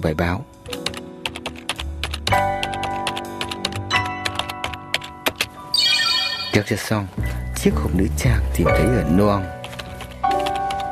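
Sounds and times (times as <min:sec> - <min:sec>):
speech: 0:00.0 - 0:00.6, 0:06.6 - 0:09.6
steady music: 0:00.0 - 0:10.8
fingers typing on a computer keyboard: 0:00.6 - 0:05.6, 0:08.8 - 0:10.8.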